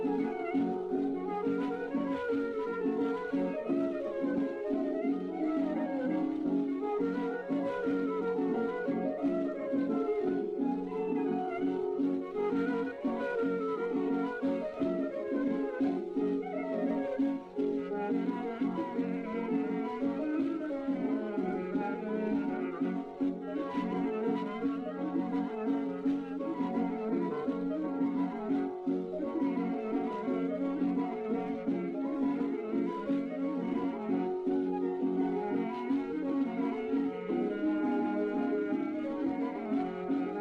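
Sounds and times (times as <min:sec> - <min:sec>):
syrtos folk dance tune from 1928: 0:00.0 - 0:40.4.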